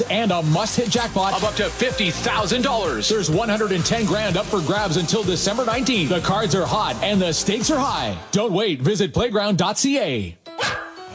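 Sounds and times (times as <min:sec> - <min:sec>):
speech: 0:00.1 - 0:11.1
happy dog barking: 0:10.6 - 0:11.1.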